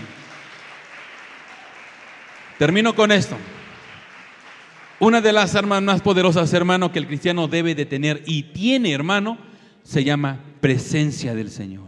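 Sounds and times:
audience clapping hands: 0:00.0 - 0:06.6
speech: 0:02.6 - 0:03.6, 0:05.0 - 0:11.8.

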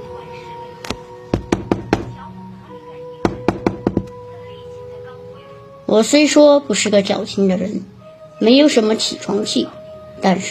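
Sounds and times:
urgent rapid knocking on a door: 0:01.4 - 0:02.2, 0:03.2 - 0:04.1
speech: 0:05.9 - 0:10.4.

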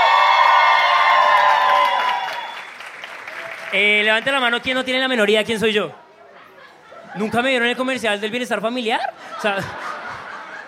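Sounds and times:
audience applause and cheering: 0:00.0 - 0:04.6
speech: 0:03.8 - 0:06.0, 0:07.1 - 0:09.8
laughter: 0:06.1 - 0:08.0, 0:08.9 - 0:10.6.

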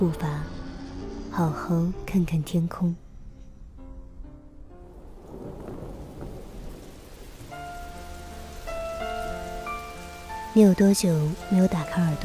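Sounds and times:
speech: 0:00.0 - 0:00.3, 0:01.4 - 0:03.0, 0:10.6 - 0:12.2
soft sustained musical tones: 0:00.0 - 0:12.2
thunder rolling: 0:04.6 - 0:12.2
rain on leaves: 0:04.9 - 0:12.2.

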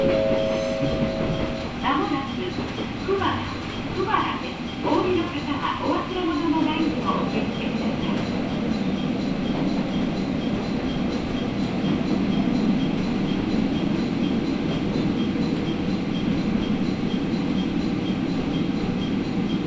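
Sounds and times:
brief tone: 0:00.0 - 0:01.7
Matsuura Railway train wheels and motor rumbling: 0:00.0 - 0:19.6.

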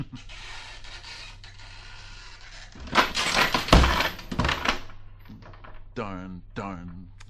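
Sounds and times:
trap door slamming: 0:02.8 - 0:07.2
speech: 0:06.0 - 0:07.2.

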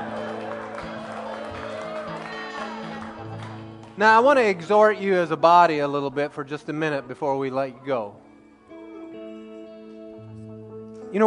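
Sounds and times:
hands clapping: 0:00.0 - 0:04.8
speech: 0:04.0 - 0:08.2.

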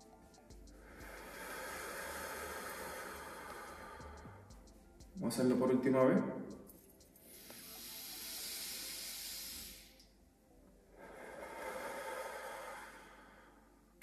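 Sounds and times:
slow breaths drawn and released through the mouth: 0:00.7 - 0:04.8, 0:07.2 - 0:10.1, 0:11.0 - 0:13.7
speech: 0:05.2 - 0:06.4.

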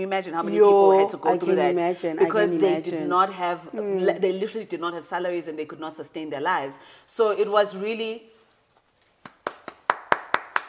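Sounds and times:
speech: 0:00.0 - 0:08.3
hand clapping: 0:09.2 - 0:10.6.

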